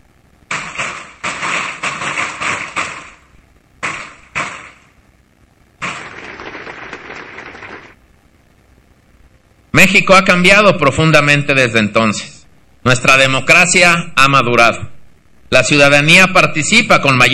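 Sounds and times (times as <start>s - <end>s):
crowd applause: 6.0s - 8.0s
speech: 9.8s - 14.9s, 15.5s - 17.3s.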